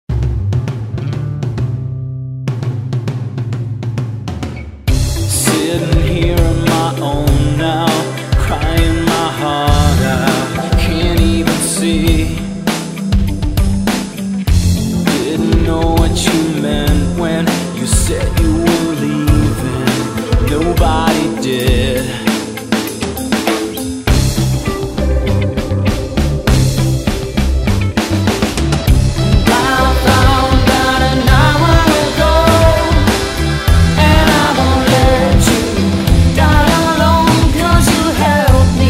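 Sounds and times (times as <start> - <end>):
pop rock music: 0.1 - 38.8.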